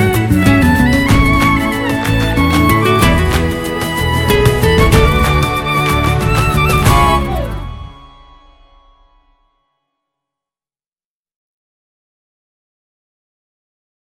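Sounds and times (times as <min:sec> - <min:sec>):
instrumental music: 0:00.0 - 0:10.0.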